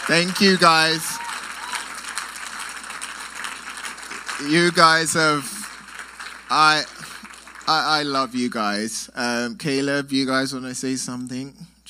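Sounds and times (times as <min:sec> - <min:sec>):
round of applause: 0:00.0 - 0:08.8
speech: 0:00.1 - 0:01.1, 0:04.4 - 0:05.6, 0:06.5 - 0:07.0, 0:07.7 - 0:11.8.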